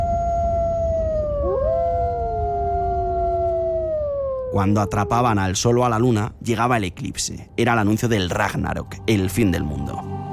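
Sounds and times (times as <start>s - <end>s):
wolves howling: 0.0s - 5.8s
speech: 4.5s - 10.1s.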